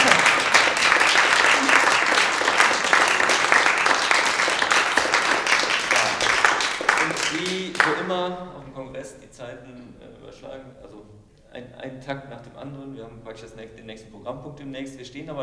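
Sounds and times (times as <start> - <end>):
audience applause: 0.0 - 8.0
speech: 9.1 - 15.4.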